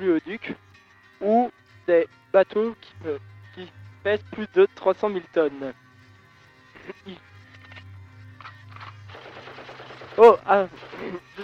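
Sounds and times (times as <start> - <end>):
speech: 0.0 - 5.8, 7.1 - 7.3, 10.2 - 11.4
machine-gun fire effect in a terrorist attack: 9.1 - 11.2.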